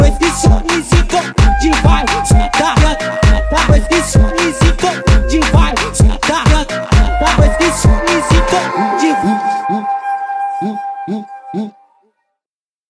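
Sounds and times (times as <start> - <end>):
bass rave funk music: 0.0 - 9.9.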